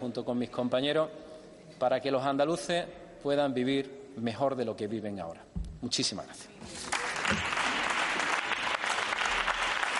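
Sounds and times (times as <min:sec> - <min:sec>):
speech: 0:00.0 - 0:07.5
Partido Popular members applauding a speech in parliament: 0:06.8 - 0:09.9.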